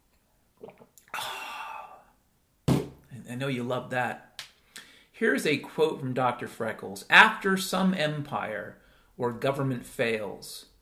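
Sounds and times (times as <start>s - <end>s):
person drinking a sip of water: 0.6s - 2.1s
speech: 3.3s - 4.3s, 5.2s - 10.7s.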